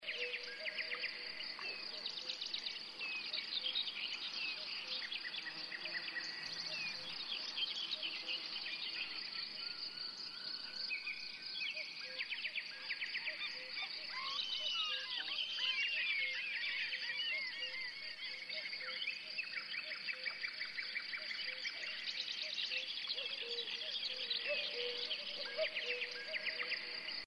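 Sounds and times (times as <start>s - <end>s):
jungle ambience: 0.0s - 27.2s.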